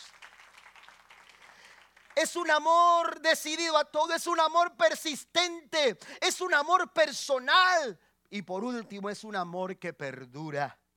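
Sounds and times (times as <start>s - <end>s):
crowd applauding: 0.0s - 2.3s
speech: 2.2s - 10.8s.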